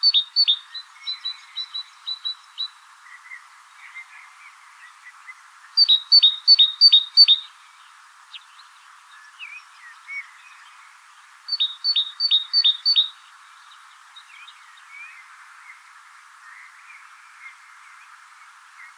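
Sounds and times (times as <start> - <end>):
great tit (Parus major) calling: 0.0 - 2.8, 5.8 - 7.5, 11.5 - 13.2.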